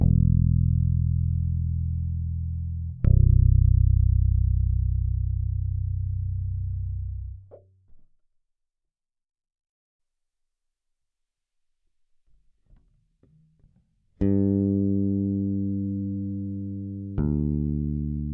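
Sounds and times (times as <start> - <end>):
electric bass through Phil Jones EQ mid control: 0.0 - 7.6, 14.2 - 18.3.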